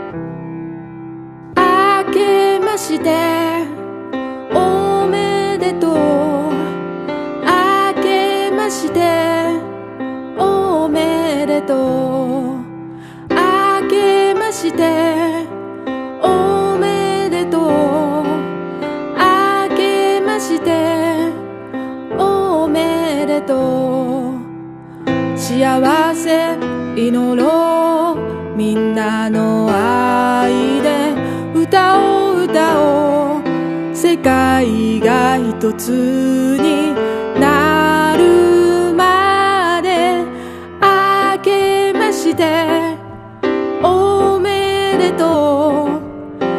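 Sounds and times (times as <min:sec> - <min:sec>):
Japanese songs: 0:01.4 - 0:46.5.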